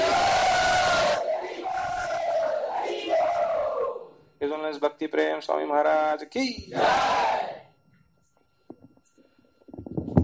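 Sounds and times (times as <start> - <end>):
crowd loudly chanting a welcome to a visiting swami at a religious gathering: 0.0 - 4.1, 6.7 - 7.6
speech: 4.7 - 7.4.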